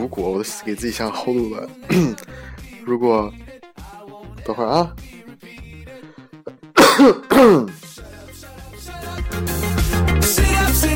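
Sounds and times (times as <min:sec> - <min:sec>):
speech: 0:00.0 - 0:03.5, 0:04.5 - 0:05.1, 0:07.0 - 0:07.8
music: 0:00.0 - 0:10.9
person coughing and clearing throat: 0:01.9 - 0:02.3, 0:06.5 - 0:07.8.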